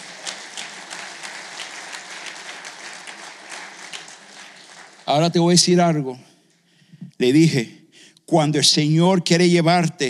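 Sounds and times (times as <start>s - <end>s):
audience applause: 0.0s - 6.0s
speech: 5.1s - 6.3s, 7.2s - 10.0s.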